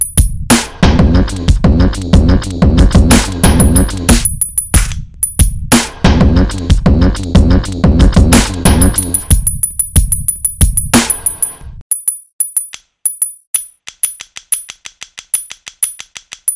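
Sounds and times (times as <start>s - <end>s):
beat made with iPhone BeatMaker: 0.0s - 11.8s.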